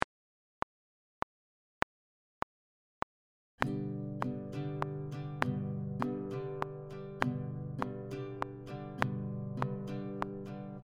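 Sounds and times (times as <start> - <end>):
guitar playing an easy strumming pattern: 3.6 - 10.8.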